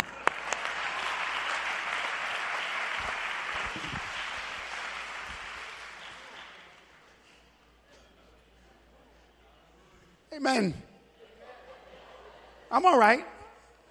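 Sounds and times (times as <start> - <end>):
audience applause: 0.0 - 7.0
speech: 10.4 - 10.8, 12.7 - 13.3
laughter: 11.1 - 12.7.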